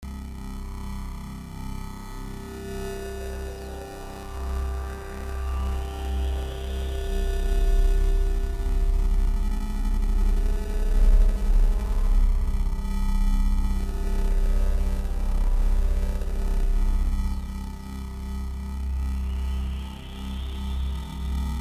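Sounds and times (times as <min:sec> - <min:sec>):
ambience: 0:00.1 - 0:21.6.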